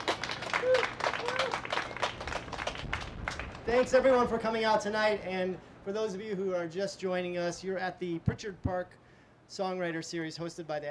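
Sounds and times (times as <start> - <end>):
audience applause: 0.0 - 3.7
speech: 3.7 - 10.8.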